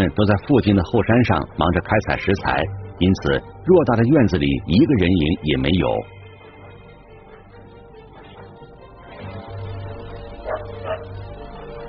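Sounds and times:
speech: 0.0 - 6.2
dog barking: 10.4 - 11.2.

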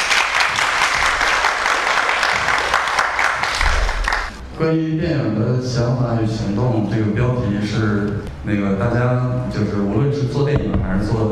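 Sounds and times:
audience applause: 0.0 - 4.4
speech: 4.6 - 11.3.

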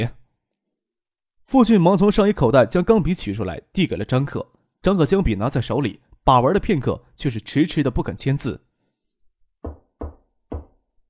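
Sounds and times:
speech: 1.5 - 8.6
knocking on a door: 9.6 - 10.8.

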